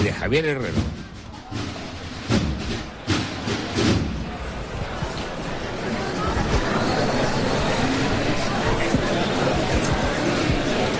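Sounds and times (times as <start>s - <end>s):
crowd chatter in outdoor neighborhood: 0.0s - 10.9s.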